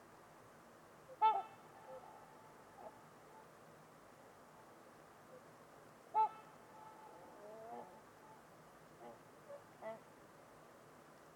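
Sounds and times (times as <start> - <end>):
steady hiss: 0.0 - 11.3
trumpeter swan honking: 1.1 - 3.5, 6.1 - 8.4, 9.0 - 10.1.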